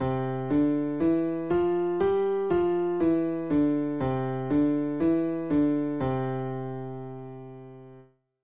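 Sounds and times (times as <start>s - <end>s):
piano played with both hands: 0.0s - 8.0s.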